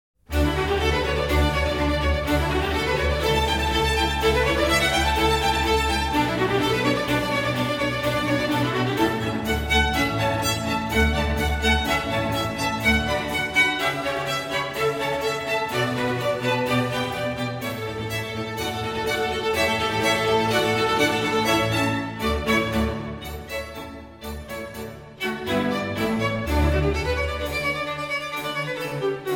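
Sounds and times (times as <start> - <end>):
allegro classical piece: 0.2 - 29.3.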